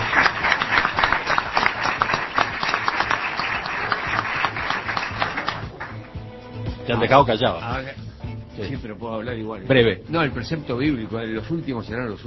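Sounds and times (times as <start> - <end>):
audience applause: 0.0 - 6.2
speech: 6.9 - 8.0, 8.6 - 12.2.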